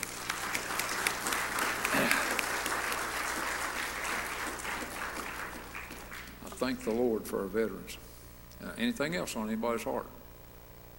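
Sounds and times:
crowd applauding: 0.0s - 7.1s
speech: 6.7s - 10.2s.

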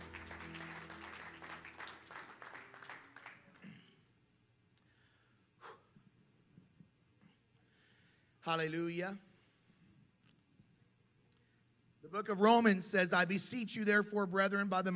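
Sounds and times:
audience clapping: 0.0s - 3.8s
speech: 8.4s - 9.3s, 12.1s - 14.9s.

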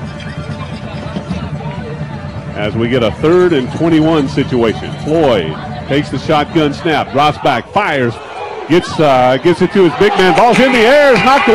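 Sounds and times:
speech: 2.6s - 11.5s
football stadium crowd cheering: 6.3s - 11.5s.

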